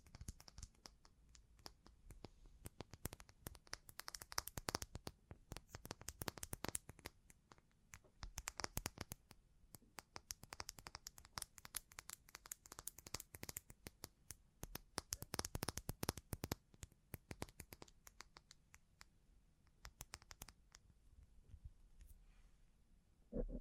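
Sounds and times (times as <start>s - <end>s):
sparse quiet clicks and taps of bling triggers: 0.0s - 22.2s.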